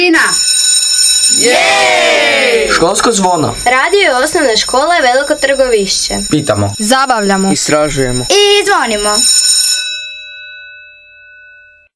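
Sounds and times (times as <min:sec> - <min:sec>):
school bell ringing: 0:00.2 - 0:11.9.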